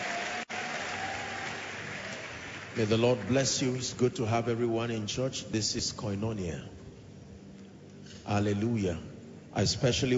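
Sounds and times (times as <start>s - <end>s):
church congregation clapping hands: 0.0s - 4.0s
speech: 2.8s - 6.8s, 8.3s - 10.1s.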